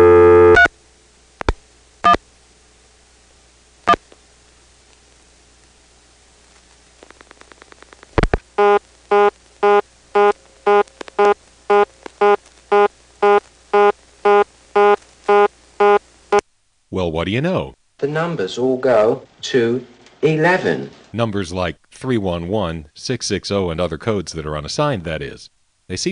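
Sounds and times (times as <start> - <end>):
fast on-off telephone exchange tone answering a dialed vacant code: 0.0 - 0.7, 8.6 - 16.4
speech: 17.0 - 26.1.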